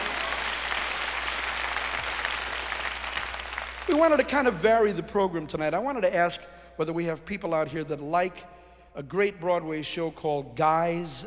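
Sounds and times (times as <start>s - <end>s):
crowd clapping: 0.0s - 4.7s
speech: 3.9s - 11.2s.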